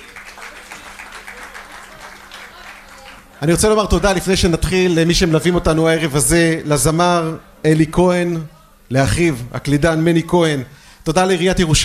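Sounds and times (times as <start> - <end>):
crowd applauding: 0.0 - 4.2
speech: 3.4 - 11.8.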